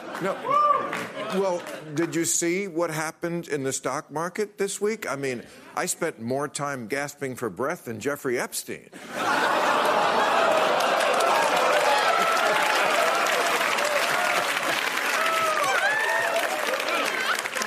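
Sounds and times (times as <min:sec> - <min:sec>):
laughter: 0:00.0 - 0:02.0, 0:09.0 - 0:15.0
speech: 0:00.2 - 0:09.5
audience applause: 0:09.2 - 0:17.6.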